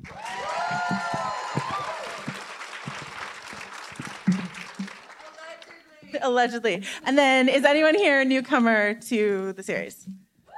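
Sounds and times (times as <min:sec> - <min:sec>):
cheers: 0:00.0 - 0:05.6
audience applause: 0:00.0 - 0:06.0
speech: 0:06.2 - 0:10.2.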